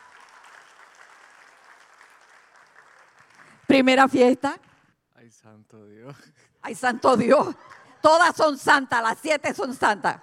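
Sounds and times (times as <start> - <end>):
audience applause: 0.0 - 3.7
speech: 3.7 - 4.6, 5.2 - 10.2.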